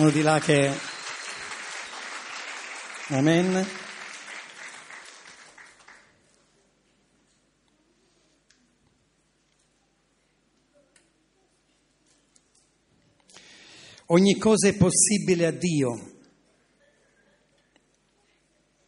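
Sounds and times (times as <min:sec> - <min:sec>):
speech: 0:00.0 - 0:00.9, 0:03.1 - 0:03.8, 0:14.1 - 0:16.1
applause of encouragement in a church service: 0:00.0 - 0:06.2.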